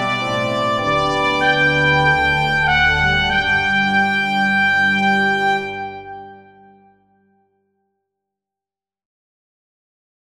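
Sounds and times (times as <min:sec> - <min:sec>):
organ playing: 0:00.0 - 0:06.6
trumpet descant: 0:00.0 - 0:06.6.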